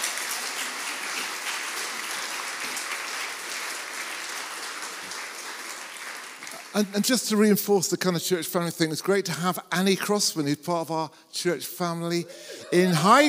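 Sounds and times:
church congregation applauding: 0:00.0 - 0:08.2
speech: 0:06.8 - 0:13.2.

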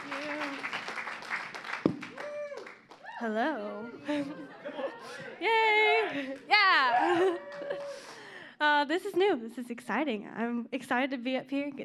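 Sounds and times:
audience applause for speakers at a church service: 0:00.0 - 0:03.2, 0:06.1 - 0:08.3
speech: 0:03.2 - 0:07.4, 0:08.6 - 0:11.8
laughter: 0:03.8 - 0:08.2.

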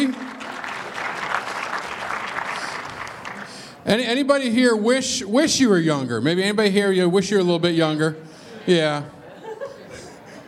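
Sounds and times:
audience clapping hands: 0:00.0 - 0:03.8
speech: 0:03.9 - 0:09.2
laughter: 0:08.5 - 0:10.4.

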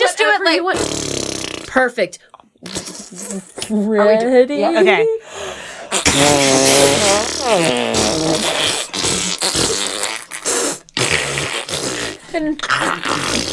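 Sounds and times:
speech: 0:00.4 - 0:09.7, 0:12.4 - 0:13.5
buzzy fart sound made with the lips: 0:00.7 - 0:01.9, 0:02.6 - 0:03.8, 0:05.9 - 0:13.5.

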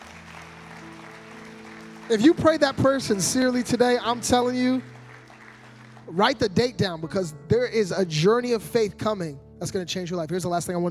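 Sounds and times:
large crowd clapping: 0:00.0 - 0:07.0
speech: 0:02.1 - 0:04.9, 0:06.1 - 0:10.8.

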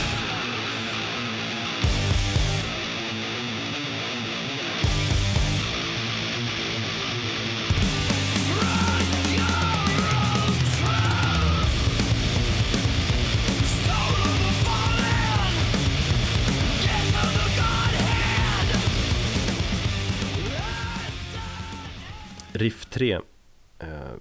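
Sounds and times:
driving drums: 0:00.0 - 0:01.0, 0:01.8 - 0:03.0, 0:04.8 - 0:06.2, 0:07.7 - 0:22.8
heavy metal guitar riff with chugging low chords: 0:00.0 - 0:22.6
speech: 0:22.6 - 0:23.3.

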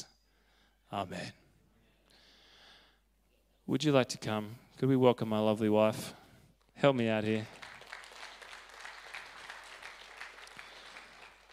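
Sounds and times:
speech: 0:00.9 - 0:01.4, 0:03.7 - 0:06.2, 0:06.8 - 0:07.6
crowd applause: 0:07.4 - 0:11.5.

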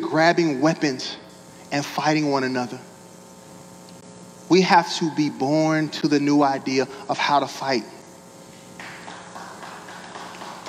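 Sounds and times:
speech: 0:00.1 - 0:02.9, 0:04.5 - 0:08.0
audience clapping: 0:08.8 - 0:10.6.

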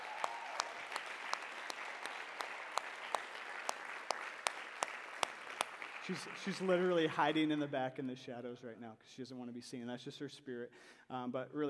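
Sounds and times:
crowd applauding: 0:00.0 - 0:07.4
speech: 0:06.1 - 0:11.6.

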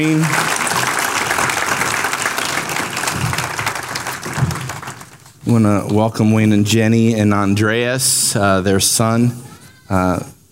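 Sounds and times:
speech: 0:00.0 - 0:00.4, 0:05.5 - 0:10.3
audience applauding to welcome a mission team: 0:00.0 - 0:05.4.

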